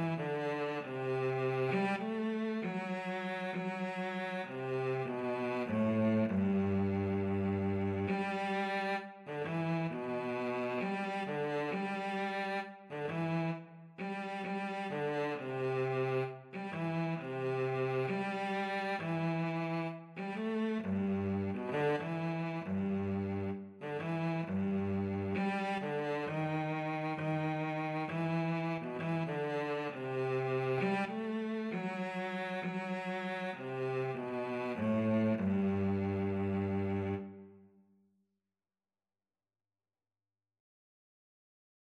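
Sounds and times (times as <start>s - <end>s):
violin and cello duet: 0.0s - 37.5s.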